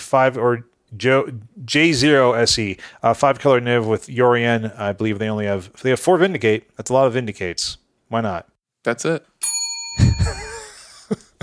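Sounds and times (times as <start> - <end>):
speech: 0.1 - 9.3
bell being hit: 9.4 - 10.7.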